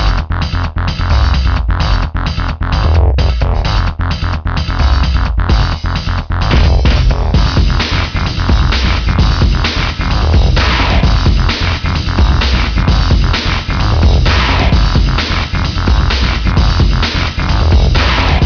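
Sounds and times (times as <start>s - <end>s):
big beat music: 0.0s - 18.4s.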